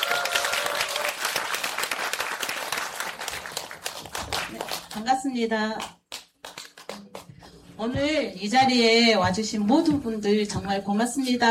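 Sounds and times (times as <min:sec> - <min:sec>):
audience applause: 0:00.0 - 0:04.9
speech: 0:05.0 - 0:06.0, 0:07.8 - 0:11.4.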